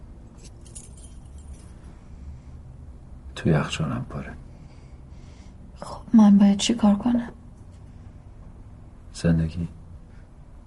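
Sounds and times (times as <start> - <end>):
apartment keys jangling: 0.3 - 1.8
speech: 3.4 - 4.5, 6.1 - 7.4, 9.2 - 9.8.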